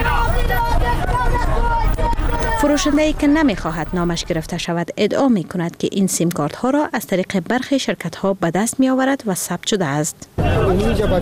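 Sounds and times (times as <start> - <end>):
busy market street crowd chatter in Kabul's Pul-e Khishti and Timur Shahi area: 0.0 - 4.7, 10.4 - 11.2
speech: 2.6 - 11.2.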